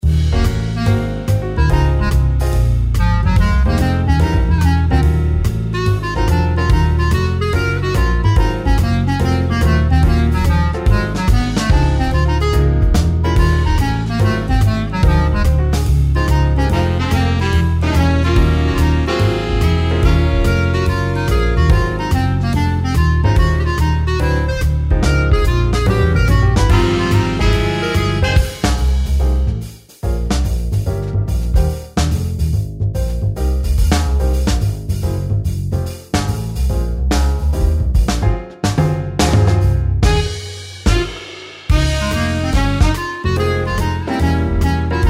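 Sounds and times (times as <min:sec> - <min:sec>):
jazz session music: 0:00.0 - 0:45.0.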